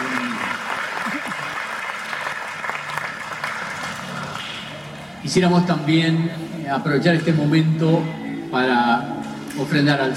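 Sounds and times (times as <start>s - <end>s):
audience applause: 0.0s - 4.8s
speech: 5.2s - 10.1s.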